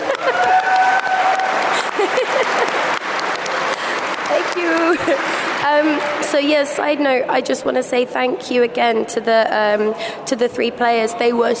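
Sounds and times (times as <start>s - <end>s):
laughter: 0.0s - 1.0s, 1.6s - 4.0s
audience applause: 0.0s - 6.4s
speech: 5.1s - 11.5s.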